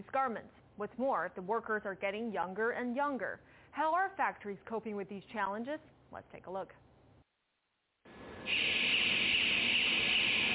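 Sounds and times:
speech: 0:00.0 - 0:06.9
alarm on a zigzag-shaped production line: 0:08.1 - 0:10.5.

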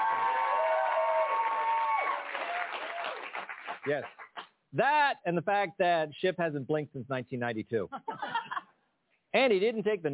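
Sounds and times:
crowd applauding and cheering: 0:00.0 - 0:04.5
speech: 0:03.8 - 0:08.3, 0:09.3 - 0:10.1.

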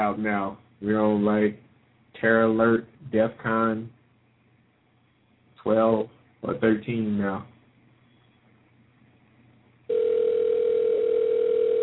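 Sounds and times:
speech: 0:00.0 - 0:01.6, 0:02.2 - 0:04.0, 0:05.6 - 0:07.5
telephone dial tone: 0:09.9 - 0:11.8.

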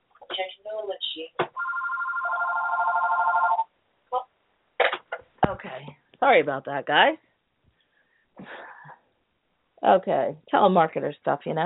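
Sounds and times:
speech: 0:00.4 - 0:01.4, 0:06.3 - 0:07.2, 0:09.8 - 0:11.6
phone ringing with an electronic warbling ring tone: 0:01.5 - 0:03.8.

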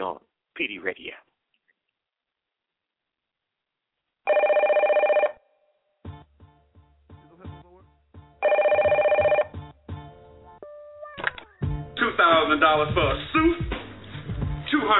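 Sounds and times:
speech: 0:00.0 - 0:01.3, 0:12.2 - 0:13.7
phone line connecting tones and clicks: 0:04.3 - 0:05.4, 0:08.4 - 0:09.6
telephone ringing on played phone tap: 0:04.3 - 0:05.4, 0:08.4 - 0:09.6.

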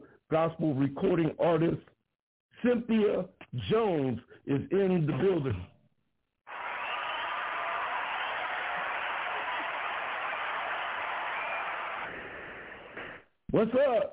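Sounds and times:
speech: 0:00.3 - 0:02.0, 0:02.6 - 0:05.7, 0:13.5 - 0:14.1
applause: 0:06.5 - 0:13.3.

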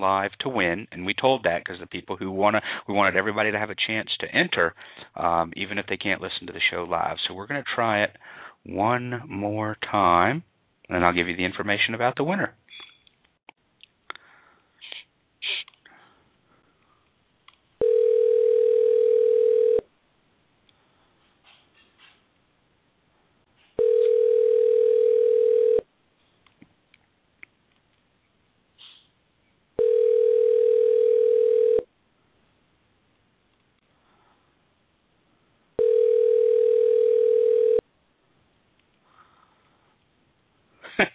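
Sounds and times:
speech: 0:00.0 - 0:12.6
telephone ringback tone of an outgoing call: 0:17.8 - 0:19.8, 0:23.8 - 0:25.9, 0:29.8 - 0:31.9, 0:35.8 - 0:37.8.

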